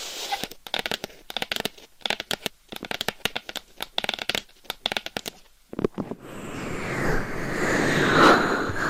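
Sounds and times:
ASMR tapping on microphone covers: 0.4 - 5.9
microphone scratching with nails on mic covers: 5.7 - 8.8.

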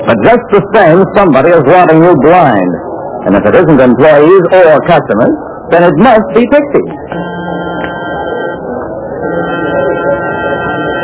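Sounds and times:
low murmur: 0.0 - 11.0
speech: 0.1 - 7.3
warning buzzer: 7.1 - 11.0.

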